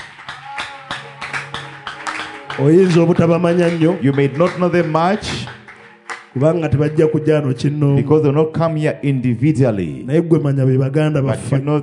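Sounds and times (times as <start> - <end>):
clapping for the church welding team: 0.0 - 7.2
speech: 2.6 - 5.6, 6.3 - 11.8.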